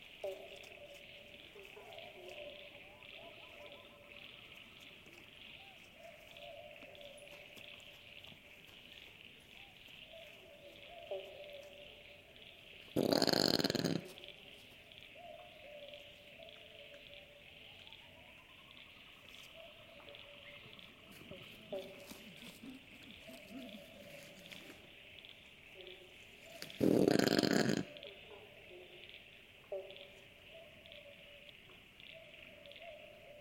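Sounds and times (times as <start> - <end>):
faint tonal calls: 0.0 - 33.4
insect drone: 0.0 - 33.4
brush-tailed possum rasping grunt: 13.0 - 14.2, 26.6 - 28.0.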